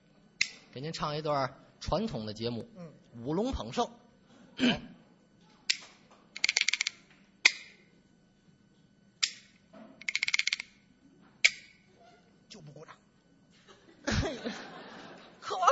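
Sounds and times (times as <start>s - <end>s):
speech: 0.8s - 4.0s, 4.6s - 4.9s
bamboo clappers clacking: 5.7s - 7.8s, 9.2s - 10.8s, 11.4s - 11.8s
laughter: 13.6s - 15.7s.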